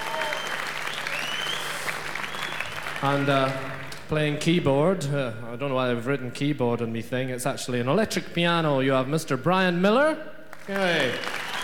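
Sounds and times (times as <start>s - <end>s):
audience applauding: 0.0s - 4.0s, 10.5s - 11.6s
speech: 3.0s - 11.4s.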